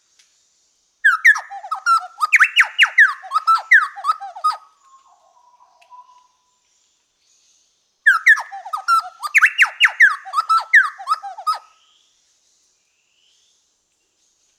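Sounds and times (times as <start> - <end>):
Orthonyx spaldingii chowchilla call: 1.1 - 6.4, 8.1 - 11.7.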